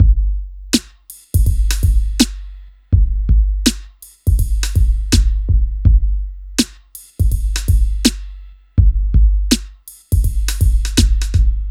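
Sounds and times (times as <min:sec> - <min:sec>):
hip hop and R&B drum loop: 0:00.0 - 0:11.6.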